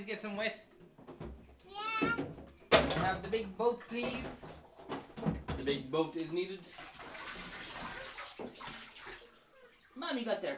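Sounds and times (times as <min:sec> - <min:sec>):
speech: 0:00.0 - 0:00.7, 0:02.9 - 0:04.6, 0:05.6 - 0:06.9, 0:10.0 - 0:10.5
bathtub filling with water: 0:05.7 - 0:10.5.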